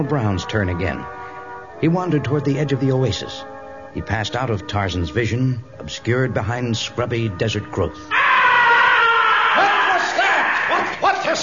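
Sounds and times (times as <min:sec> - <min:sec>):
speech: 0:00.0 - 0:01.2, 0:01.8 - 0:08.4
man screaming: 0:08.1 - 0:11.4.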